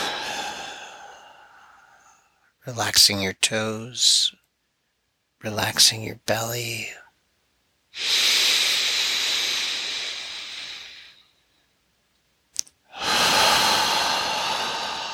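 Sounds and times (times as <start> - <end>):
forceful exhalations in a relaxation breathing exercise: 0.0 - 2.2, 8.0 - 11.2, 12.9 - 15.1
speech: 2.6 - 4.4, 5.4 - 7.0, 7.9 - 8.4.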